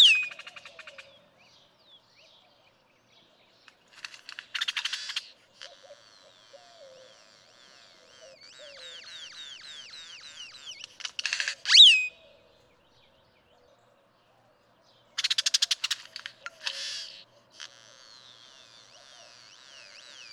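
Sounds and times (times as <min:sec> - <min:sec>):
Great-tailed Grackle calling: 0:00.0 - 0:01.2, 0:03.7 - 0:12.3, 0:15.2 - 0:20.3.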